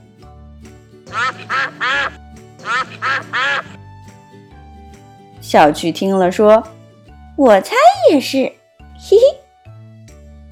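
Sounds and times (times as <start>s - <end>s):
speech: 1.1s - 2.1s, 5.5s - 6.8s, 7.4s - 9.4s
ducklings quacking: 1.1s - 3.8s.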